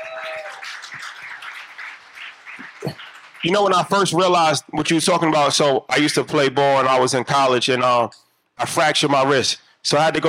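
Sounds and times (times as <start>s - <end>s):
group clapping: 0.0s - 4.6s
speech: 2.8s - 10.2s.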